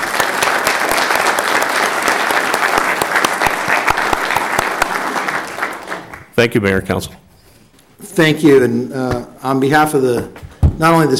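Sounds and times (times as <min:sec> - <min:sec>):
audience applause: 0:00.0 - 0:06.3
speech: 0:06.4 - 0:07.2, 0:08.2 - 0:11.1.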